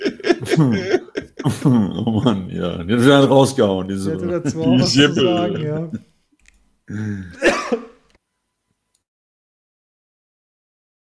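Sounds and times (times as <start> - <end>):
laughter: 0.0 - 6.0, 7.3 - 7.9
speech: 0.6 - 6.1, 6.9 - 7.5
rough voiced throat clearing: 6.9 - 7.9
short harsh coughs: 7.3 - 8.0.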